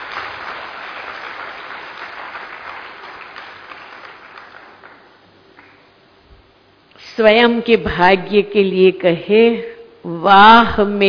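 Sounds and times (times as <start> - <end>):
enthusiastic applause from a spiritual gathering: 0.0 - 5.9
speech: 7.2 - 11.0.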